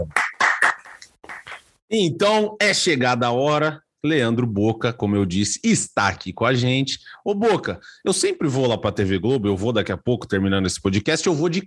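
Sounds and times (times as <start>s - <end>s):
hand clapping: 0.0s - 1.7s
speech: 1.9s - 11.6s.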